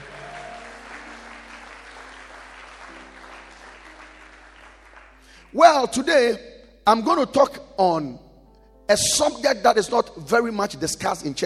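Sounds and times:
audience clapping: 0:00.0 - 0:05.6
speech: 0:05.5 - 0:08.2, 0:08.9 - 0:11.4.

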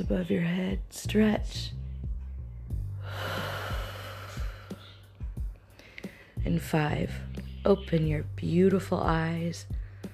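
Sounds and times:
speech: 0:00.0 - 0:01.8, 0:06.4 - 0:09.8
person taking a deep breath during a guided stretching session: 0:02.2 - 0:06.4.

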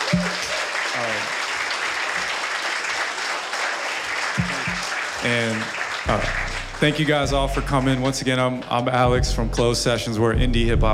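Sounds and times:
audience applause: 0:00.0 - 0:08.2
speech: 0:00.2 - 0:01.4, 0:05.2 - 0:10.9.

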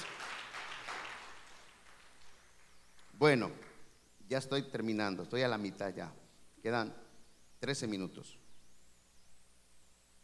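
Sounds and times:
audience applause: 0:00.0 - 0:02.7
speech: 0:03.2 - 0:03.7, 0:04.3 - 0:07.0, 0:07.6 - 0:08.4.

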